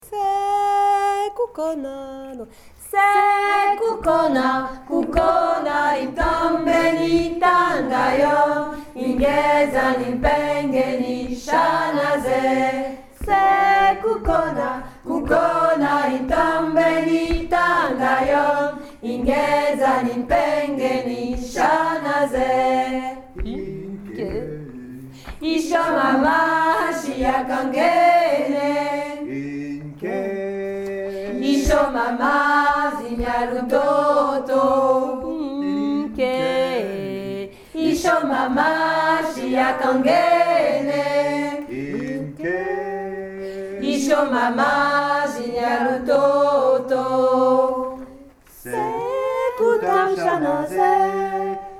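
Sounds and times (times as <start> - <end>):
second voice part singing: 0.0 - 51.7.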